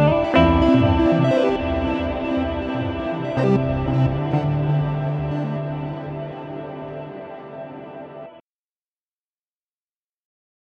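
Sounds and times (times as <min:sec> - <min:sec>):
electric guitar through Mooer GE 300: 0:00.0 - 0:08.4.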